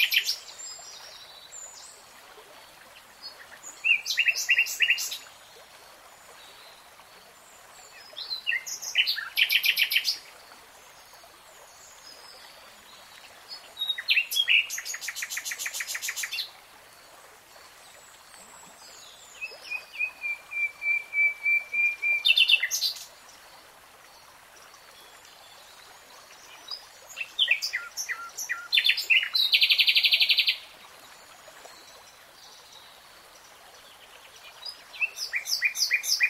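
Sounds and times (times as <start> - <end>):
nightingale song: 0.0 - 2.0, 3.2 - 5.3, 7.8 - 10.3, 11.9 - 16.6, 17.6 - 23.2, 24.8 - 36.2.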